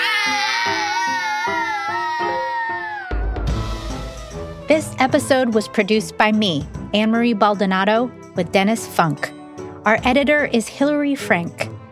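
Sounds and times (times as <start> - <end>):
mother and daughter screaming: 0.0 - 4.6
speech: 4.7 - 11.7.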